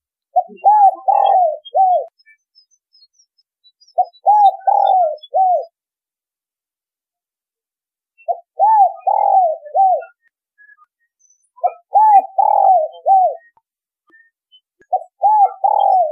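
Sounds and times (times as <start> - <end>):
spotted dove cooing: 0.4 - 2.1, 4.0 - 5.7, 8.3 - 10.2, 11.6 - 13.5, 14.9 - 16.1.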